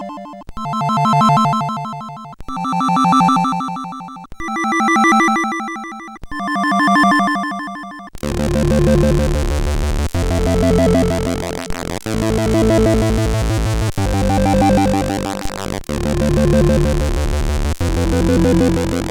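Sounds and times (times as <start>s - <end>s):
music track: 0.6s - 19.0s.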